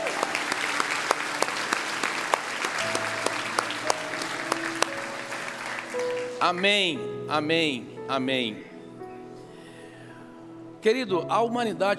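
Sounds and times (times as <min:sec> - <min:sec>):
audience applauding: 0:00.0 - 0:06.9
speech: 0:06.4 - 0:08.7, 0:10.8 - 0:11.9.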